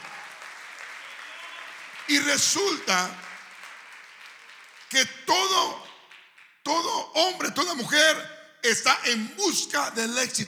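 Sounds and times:
audience applauding: 0.0s - 6.5s
speech: 2.1s - 3.3s, 4.9s - 5.8s, 6.6s - 10.4s.

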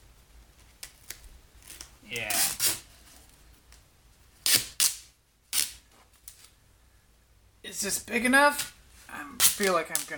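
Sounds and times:
duct tape being torn from a roll: 0.6s - 2.9s, 4.4s - 6.5s, 9.4s - 10.1s
speech: 2.1s - 2.6s, 7.8s - 10.1s.

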